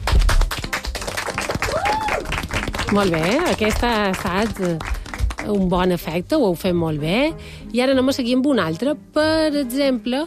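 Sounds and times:
children clapping: 0.0 - 5.6
speech: 2.9 - 10.2.

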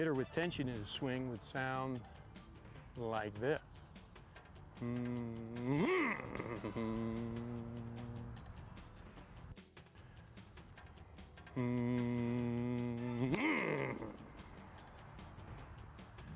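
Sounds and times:
speech: 0.0 - 2.2, 3.0 - 3.9, 4.8 - 8.2, 11.6 - 13.4
person humming a low tone: 4.8 - 8.5, 11.5 - 14.2.

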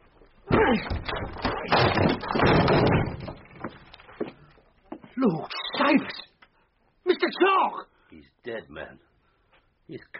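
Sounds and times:
locked door being broken down: 0.5 - 3.9
speech: 0.7 - 3.1, 5.2 - 6.2, 7.5 - 9.1, 9.9 - 10.1.

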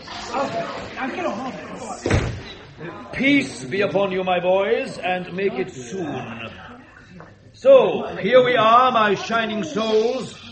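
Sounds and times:
speech: 0.3 - 10.4
door slamming: 2.0 - 2.6.

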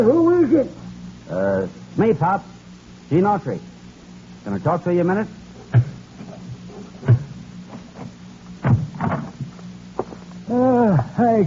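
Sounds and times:
speech: 0.0 - 3.7, 4.4 - 5.9, 10.5 - 11.4
door creaking: 5.7 - 9.5.

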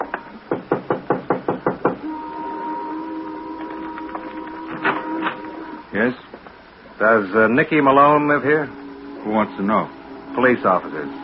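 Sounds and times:
knocking on a house door: 0.5 - 2.0
speech: 6.0 - 6.3, 7.0 - 11.2.

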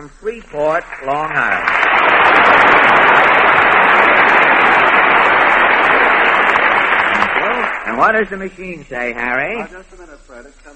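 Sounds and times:
speech: 0.0 - 3.4, 7.9 - 10.7
audience applause: 0.7 - 8.3.

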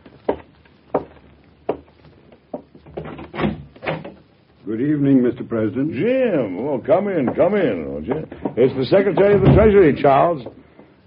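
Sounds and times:
door being opened: 2.8 - 4.3, 7.2 - 10.0
speech: 4.7 - 11.0.

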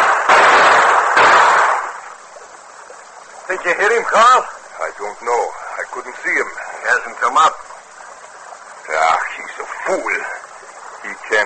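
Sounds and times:
gunshots: 0.0 - 2.1
speech: 3.5 - 7.6, 9.6 - 10.4, 11.0 - 11.4.

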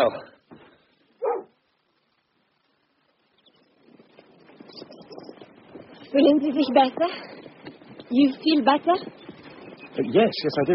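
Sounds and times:
speech: 0.0 - 0.3, 6.2 - 7.4, 8.1 - 9.2, 10.0 - 10.7
low rustling murmur: 0.0 - 10.7
dog barking: 1.2 - 1.6.

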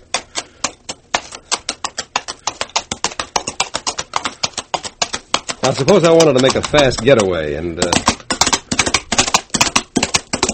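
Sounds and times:
coconut shells imitating walking horse hooves: 0.0 - 10.5
speech: 5.6 - 8.1.

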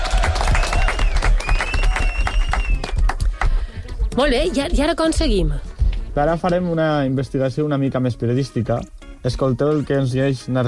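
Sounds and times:
whistles and cheers: 0.0 - 3.1
group applauding: 0.0 - 3.7
speech: 4.2 - 10.6.

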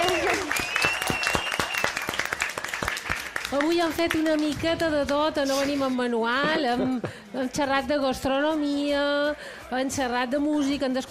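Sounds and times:
audience applause: 0.0 - 4.6
speech: 3.5 - 11.0.

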